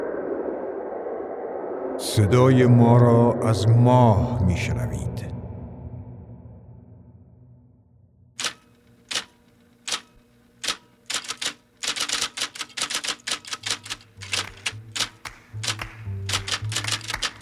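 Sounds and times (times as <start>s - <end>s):
speech: 2.0s - 5.3s
typewriter typing: 8.4s - 17.3s.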